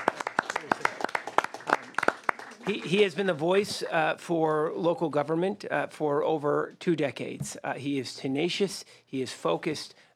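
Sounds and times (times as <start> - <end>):
audience applause at a California local government gathering: 0.0 - 3.0
speech: 2.7 - 10.1.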